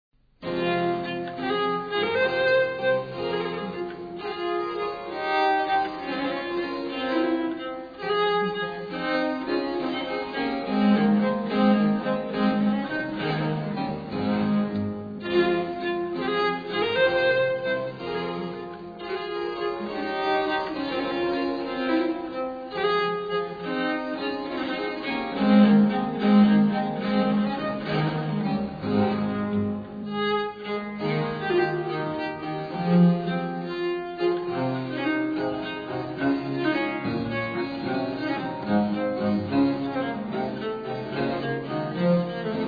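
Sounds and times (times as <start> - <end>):
viol playing a gigue: 0.4 - 42.6.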